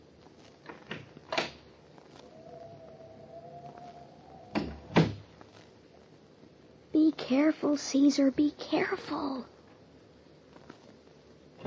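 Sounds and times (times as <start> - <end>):
door being opened: 4.4 - 5.2
speech: 7.2 - 9.6.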